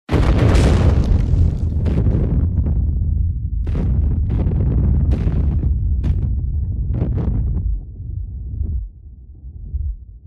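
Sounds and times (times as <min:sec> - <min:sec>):
explosion: 0:00.1 - 0:07.8.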